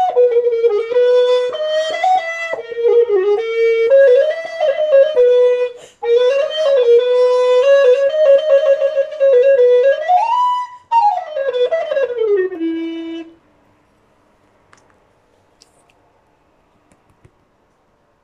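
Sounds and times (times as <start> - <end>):
grenadilla recorders playing: 0.0 - 13.4.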